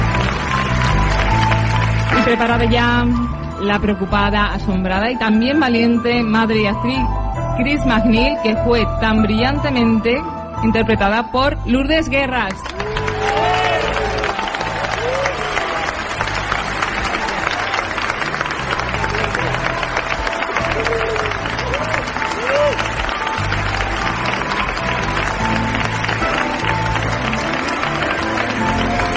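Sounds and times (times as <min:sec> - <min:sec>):
audience applause: 0:00.0 - 0:02.8, 0:12.5 - 0:29.1
speech: 0:02.3 - 0:12.9.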